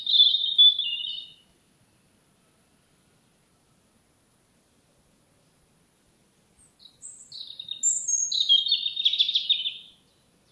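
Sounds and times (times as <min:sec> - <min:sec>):
European robin singing: 0:00.0 - 0:01.5, 0:06.6 - 0:10.4.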